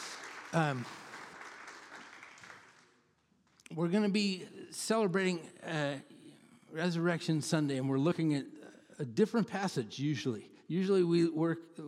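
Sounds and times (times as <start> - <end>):
audience applause: 0.0 - 3.0
speech: 0.5 - 1.0, 3.7 - 11.8.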